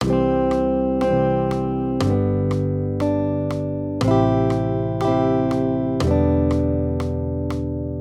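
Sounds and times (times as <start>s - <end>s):
major triads: 0.0s - 7.9s.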